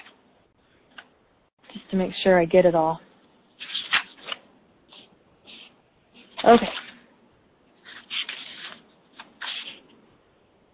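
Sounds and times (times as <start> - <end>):
speech: 1.9 - 3.0, 6.4 - 6.8
paper pages of notes rustling: 3.5 - 7.1, 7.8 - 10.0.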